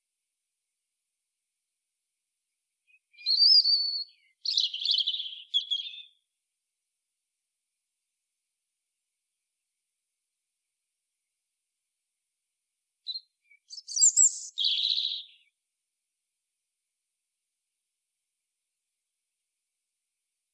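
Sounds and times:
European robin song: 2.8 - 6.3, 13.0 - 15.6.

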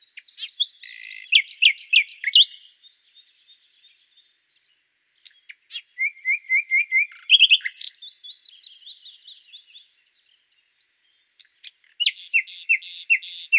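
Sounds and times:
common nightingale Luscinia megarhynchos singing varied phrases: 0.0 - 13.5.

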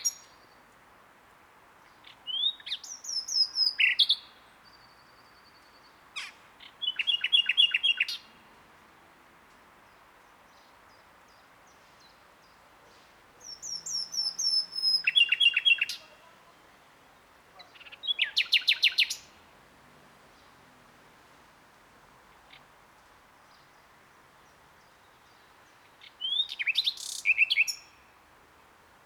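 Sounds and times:
common nightingale singing: 0.0 - 0.6, 1.9 - 8.4, 13.3 - 19.4, 23.4 - 28.3.

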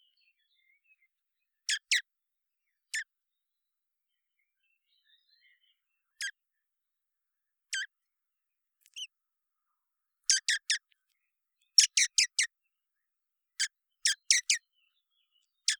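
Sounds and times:
common blackbird clicking call notes: 1.7 - 2.0, 8.8 - 9.1, 10.3 - 11.1, 11.7 - 12.5, 13.6 - 14.6, 15.5 - 15.7.

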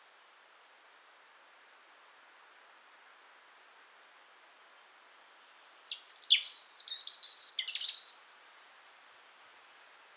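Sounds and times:
European robin song: 5.4 - 8.2.

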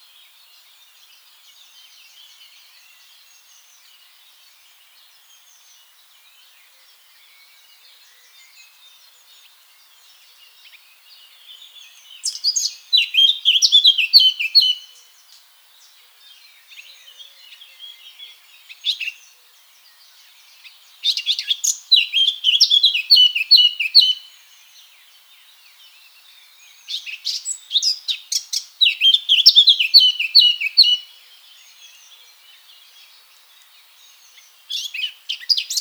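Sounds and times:
Eurasian blackcap song: 12.2 - 15.0, 20.6 - 24.4, 26.7 - 32.1, 34.1 - 35.7.

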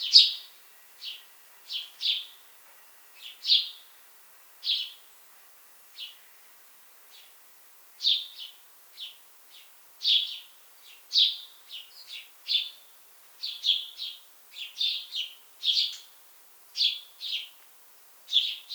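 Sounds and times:
house sparrow chirping: 0.0 - 2.4, 3.2 - 3.8, 4.6 - 5.0, 8.0 - 12.8, 13.4 - 16.1, 16.8 - 17.6, 18.3 - 18.7.

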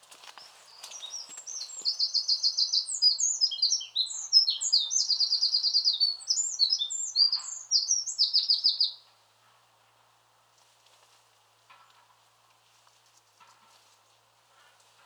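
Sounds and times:
Eurasian wren singing: 0.9 - 9.0.

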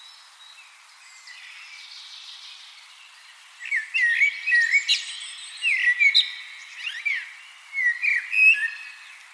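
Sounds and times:
Common blackbird Turdus merula fluty whistled notes with squeaky trills: 3.6 - 9.0.

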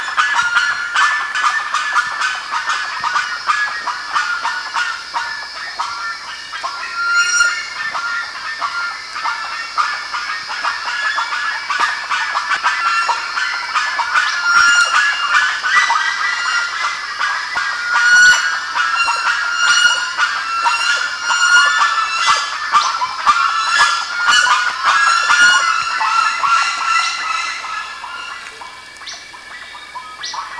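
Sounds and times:
bird flock calling with honks and chatter: 0.0 - 30.5.

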